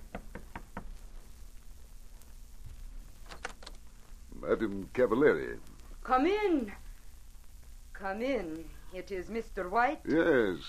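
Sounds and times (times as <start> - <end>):
knocking on a suite door: 0.0 - 0.9
speech: 4.5 - 6.8, 8.0 - 10.6.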